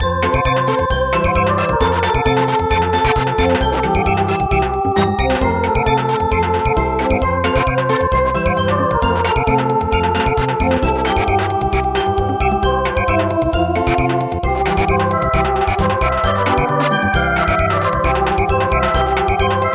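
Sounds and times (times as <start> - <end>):
polka samba music: 0.0 - 19.7.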